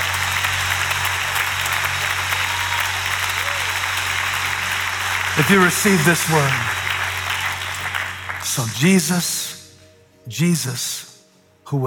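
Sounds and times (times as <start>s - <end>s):
audience clapping hands: 0.0s - 9.4s
speech: 5.4s - 6.8s, 8.5s - 9.6s, 10.3s - 11.1s, 11.7s - 11.8s.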